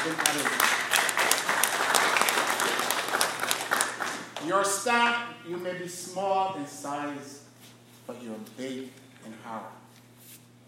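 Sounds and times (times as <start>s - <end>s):
speech: 0.0s - 0.7s, 4.5s - 7.4s, 8.1s - 9.8s
audience clapping: 0.0s - 4.7s.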